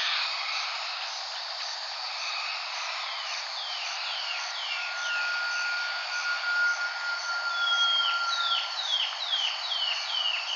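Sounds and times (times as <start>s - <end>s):
high hiss: 0.1s - 10.5s
bird whistling: 4.5s - 9.4s.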